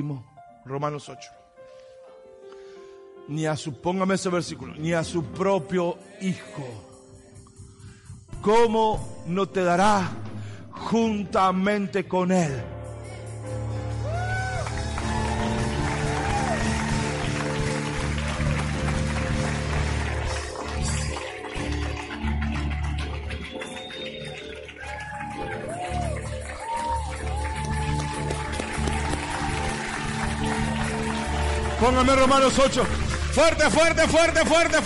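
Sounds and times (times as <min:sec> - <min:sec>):
speech: 0:00.0 - 0:01.4, 0:03.3 - 0:06.9, 0:08.4 - 0:12.8, 0:31.8 - 0:34.8
cheers and whoops: 0:13.8 - 0:18.5, 0:24.6 - 0:31.7
audience applause: 0:14.0 - 0:34.8.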